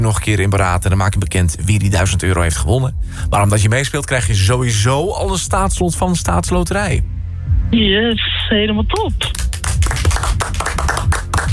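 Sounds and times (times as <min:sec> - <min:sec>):
speech: 0:00.0 - 0:11.2
game show studio audience applause: 0:09.0 - 0:11.5.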